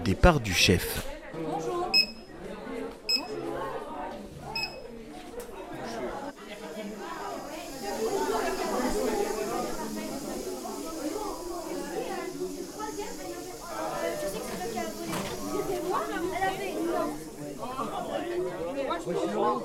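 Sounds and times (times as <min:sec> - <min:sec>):
speech: 0:00.0 - 0:01.1
crowd chatter: 0:00.0 - 0:19.6
canteen card reader beeping: 0:04.6 - 0:04.8.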